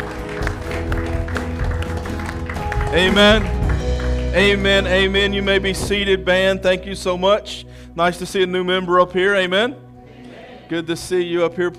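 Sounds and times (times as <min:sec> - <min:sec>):
audience clapping hands in praise: 0:00.0 - 0:06.1
speech: 0:02.9 - 0:03.6, 0:04.4 - 0:09.8, 0:10.7 - 0:11.7.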